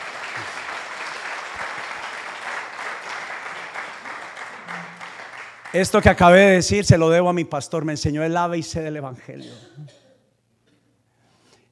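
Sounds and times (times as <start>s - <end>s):
audience applause: 0.0s - 6.4s
speech: 5.7s - 10.0s.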